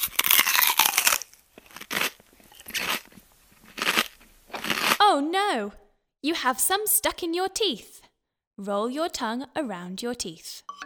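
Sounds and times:
crunchy chewing of a mouthful of sweets: 0.0 - 5.0
speech: 5.2 - 8.0, 8.6 - 10.7.

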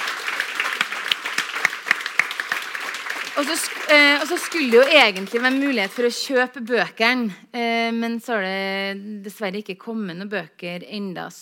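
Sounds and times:
audience applause at a book event: 0.0 - 6.2
speech: 3.4 - 11.4.

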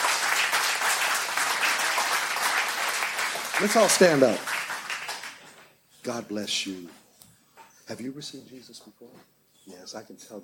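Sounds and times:
audience applauding: 0.0 - 5.7
speech: 3.6 - 4.5, 6.1 - 7.0, 7.9 - 10.4.

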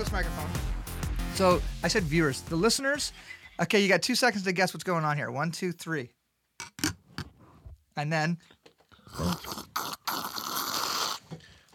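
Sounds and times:
speech: 0.1 - 0.7, 1.4 - 6.9, 8.0 - 9.6
slurping beer: 8.9 - 11.4.

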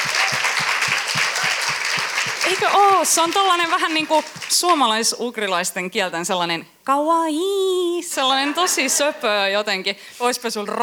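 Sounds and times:
audience applause: 0.0 - 4.7
speech: 2.5 - 10.8.

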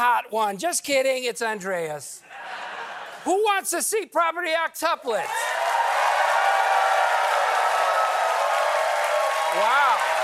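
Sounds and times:
speech: 0.0 - 2.6, 3.2 - 5.5, 9.6 - 9.9
audience applause: 5.3 - 10.2.

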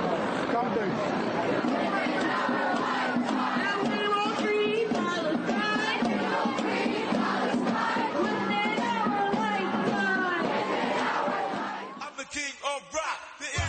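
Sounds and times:
crowd chanting: 0.0 - 13.6
speech: 0.6 - 3.3.

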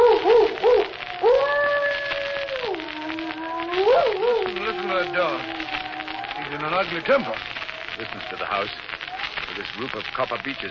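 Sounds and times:
loud wavering howl: 0.0 - 8.4
heavy rain from a thunderstorm: 0.0 - 10.6
speech: 6.9 - 8.9, 9.6 - 10.6.

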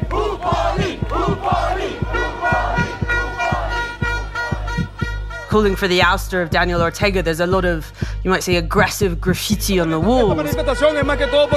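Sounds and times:
protest crowd shouting slogans in unison: 0.0 - 5.5
steady regular drumbeat: 0.0 - 11.5
speech: 5.5 - 11.5.

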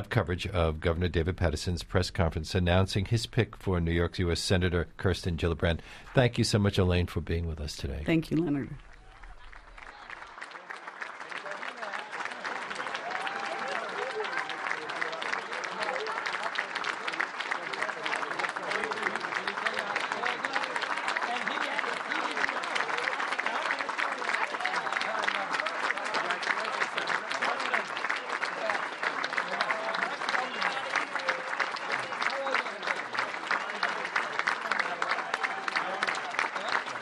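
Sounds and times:
speech: 0.0 - 8.9
audience applause at press conference: 8.4 - 37.0.

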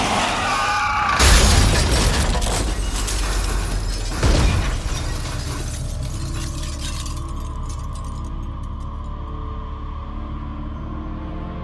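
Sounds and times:
car crash, car sideswiped off the road: 0.0 - 8.2.

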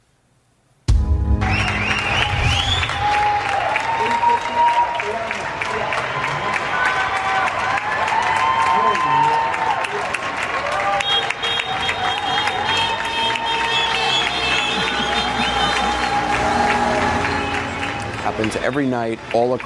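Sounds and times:
shrill whistles: 1.4 - 3.2, 11.1 - 16.1
community clapping from apartment windows: 1.4 - 19.6
scattered cheers: 1.5 - 19.6
laughter: 14.0 - 17.6
speech: 18.4 - 19.6.

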